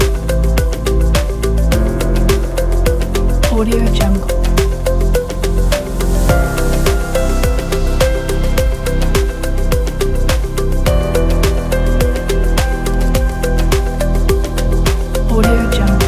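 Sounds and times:
ambient corporate music: 0.0s - 16.0s.

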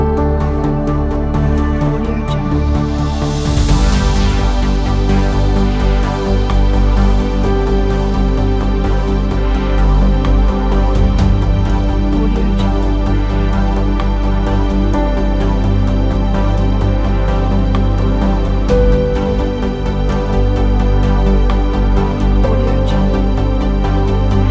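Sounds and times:
cinematic inspiring soundscape: 0.0s - 24.4s.

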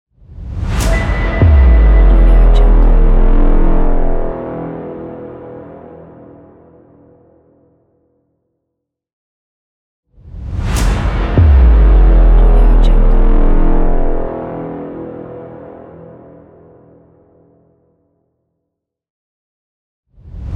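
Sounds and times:
trailer hit: 0.3s - 4.4s, 10.4s - 14.3s.

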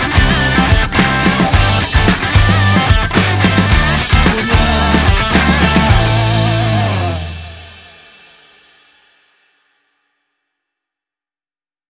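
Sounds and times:
fun dynamic driving rock music: 0.0s - 8.1s.

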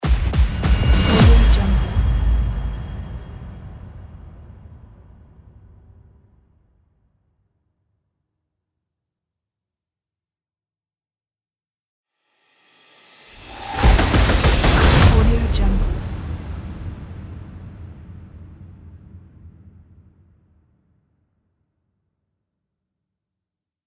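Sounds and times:
trailer tech hits: 0.0s - 6.1s, 13.4s - 20.1s.

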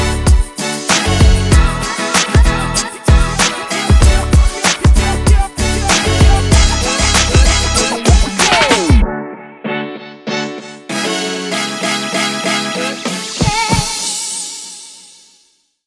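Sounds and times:
energetic hip hop music: 0.0s - 9.3s, 11.6s - 14.6s.

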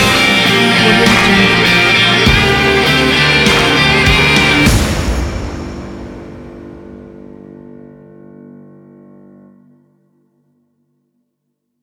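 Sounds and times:
western music: 0.0s - 7.6s.

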